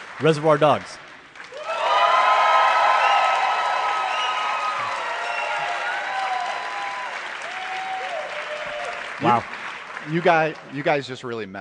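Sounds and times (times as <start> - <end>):
crowd applause: 0.0 - 11.3
speech: 0.2 - 1.0, 10.1 - 11.6
crowd whooping and cheering: 1.5 - 9.6.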